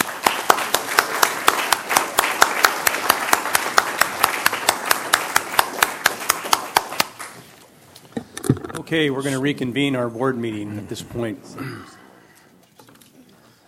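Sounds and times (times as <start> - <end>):
audience round of applause: 0.0 - 7.5
speech: 8.9 - 12.0.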